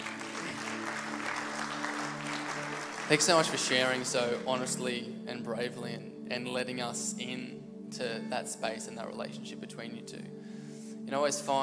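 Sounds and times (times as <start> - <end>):
audience clapping: 0.0 - 4.8
speech: 3.1 - 10.5, 11.1 - 11.6.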